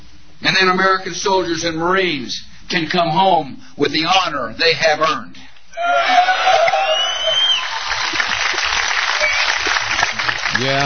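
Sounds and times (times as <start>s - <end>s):
speech: 0.5s - 7.0s, 10.6s - 10.8s
audience applause: 6.4s - 10.8s.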